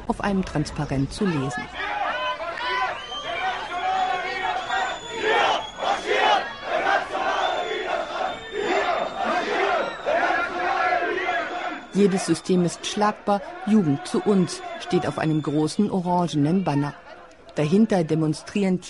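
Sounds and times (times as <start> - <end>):
speech: 0.1 - 2.0, 12.0 - 18.8
counter-protesters shouting and jeering: 1.2 - 18.8
counter-protesters whistling at a march: 1.7 - 12.9, 13.5 - 15.9.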